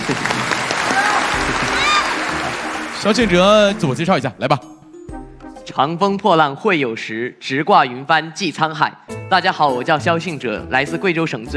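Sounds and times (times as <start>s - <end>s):
studio audience applause on a quiz competition show: 0.0s - 4.2s
speech: 3.0s - 4.8s, 5.7s - 11.5s.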